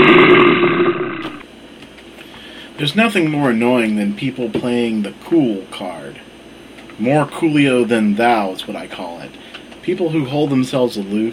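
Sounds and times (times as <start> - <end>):
bear growl: 0.0 - 1.4
speech: 2.8 - 6.3, 7.0 - 11.3.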